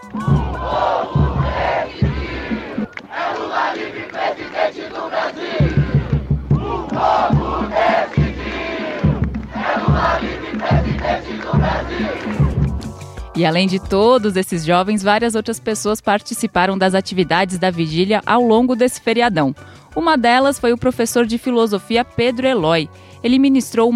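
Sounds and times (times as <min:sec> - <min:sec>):
crowd chanting collective slogans: 0:00.1 - 0:12.8
speech: 0:13.4 - 0:23.9.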